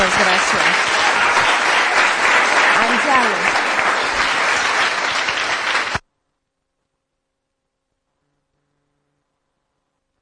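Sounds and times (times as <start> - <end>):
full hall of people applauding: 0.0 - 6.0.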